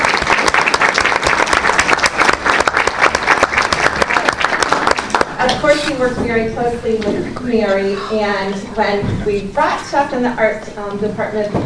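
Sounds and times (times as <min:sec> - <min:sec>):
crowd applauding: 0:00.0 - 0:05.5
speech: 0:05.4 - 0:11.6.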